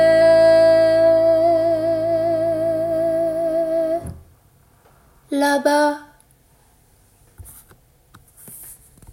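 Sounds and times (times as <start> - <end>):
chant: 0.0 - 4.2
piano: 0.0 - 4.3.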